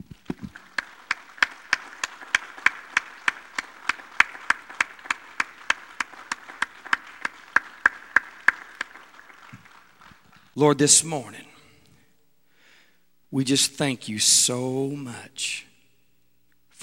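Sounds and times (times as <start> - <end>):
audience applauding: 0.0 - 10.9
speech: 10.6 - 11.5, 13.3 - 15.7.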